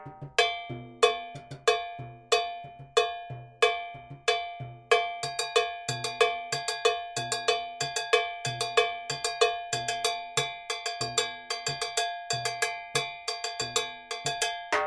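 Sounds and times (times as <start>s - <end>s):
LP cowbell: 0.4s - 14.7s.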